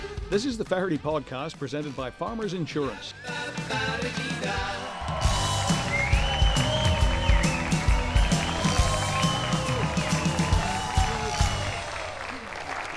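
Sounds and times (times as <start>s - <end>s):
speech: 0.3s - 4.9s
crowd cheering and yelling: 3.2s - 12.9s
loud applause from a large audience: 4.2s - 12.9s.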